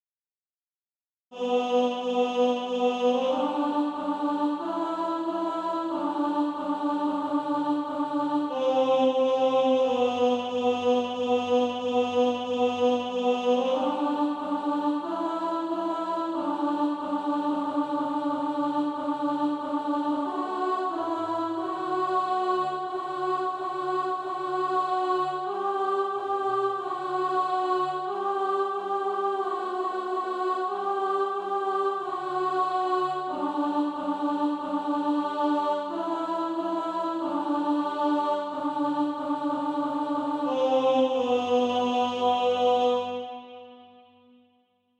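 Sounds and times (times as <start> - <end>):
alto voice singing: 1.3 - 44.1.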